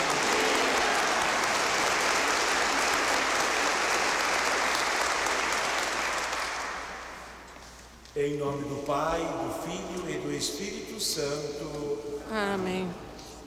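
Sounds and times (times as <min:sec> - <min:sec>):
applause from an audience: 0:00.0 - 0:07.4
speech: 0:08.2 - 0:13.1.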